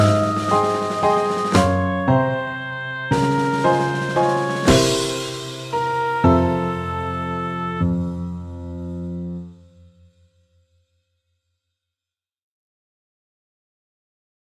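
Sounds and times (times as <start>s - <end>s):
waltz theme and variations: 0.0s - 9.6s.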